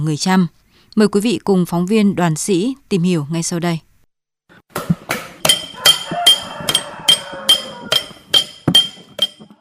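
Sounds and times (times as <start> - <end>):
speech: 0.0 - 3.9
Cham silversmith hand tools tapping silver: 5.4 - 9.5.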